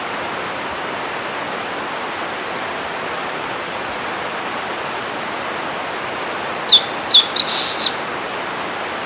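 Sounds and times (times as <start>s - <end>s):
steady hiss: 0.2s - 9.0s
high downward-slurred bird chirps: 6.7s - 8.0s.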